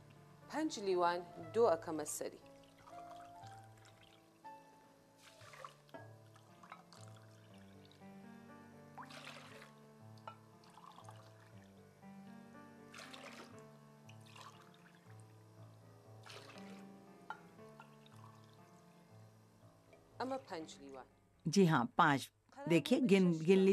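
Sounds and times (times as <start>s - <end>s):
speech: 0.5s - 2.5s, 20.5s - 23.7s
doogh yogurt drink pouring from a glass into a pot of porridge: 2.4s - 4.5s, 5.2s - 8.1s, 8.9s - 11.8s, 12.9s - 18.9s.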